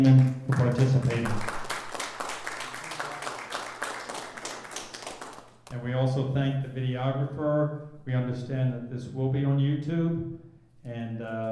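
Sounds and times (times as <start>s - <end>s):
speech: 0.0s - 1.6s, 5.7s - 11.5s
audience applause: 0.5s - 5.6s.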